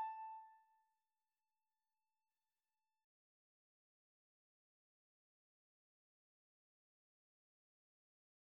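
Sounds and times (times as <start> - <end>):
clarinet: 0.0 - 0.5.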